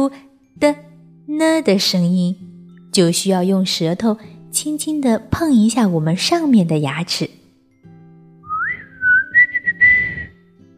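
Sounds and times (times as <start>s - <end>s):
speech: 0.0s - 7.4s
person whistling a tune: 8.5s - 10.4s.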